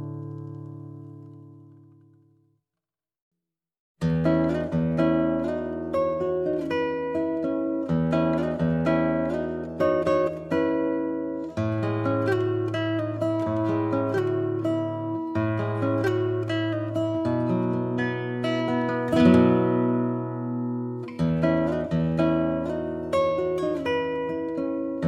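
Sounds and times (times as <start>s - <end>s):
Lowden acoustic guitar: 0.0s - 2.5s, 4.0s - 25.0s.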